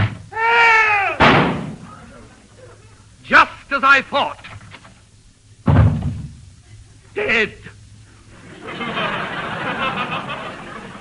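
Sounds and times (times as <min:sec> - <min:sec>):
door slamming: 0:01.2 - 0:01.8, 0:05.6 - 0:06.4
speech: 0:03.8 - 0:04.5, 0:07.2 - 0:07.7
laughter: 0:08.3 - 0:10.9.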